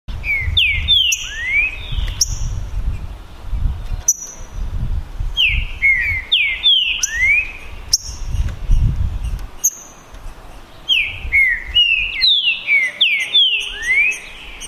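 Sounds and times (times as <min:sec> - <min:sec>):
green-winged saltator males singing in a song contest: 0:00.2 - 0:03.0, 0:03.9 - 0:04.7, 0:05.3 - 0:10.1, 0:10.8 - 0:14.6.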